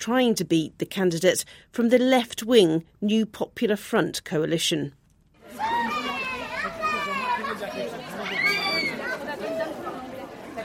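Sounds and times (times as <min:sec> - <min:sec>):
speech: 0:00.0 - 0:05.0
young children babbling outside a school: 0:05.4 - 0:10.2
parents chattering outside a school: 0:05.4 - 0:10.6.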